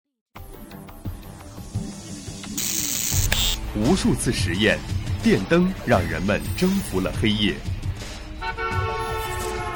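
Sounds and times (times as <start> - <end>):
speech: 3.7 - 7.8
car horn honk: 8.4 - 9.7.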